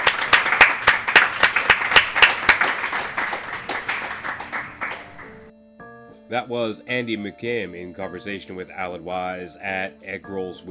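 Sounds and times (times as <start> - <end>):
audience applause: 0.0 - 5.4
speech: 6.3 - 10.6.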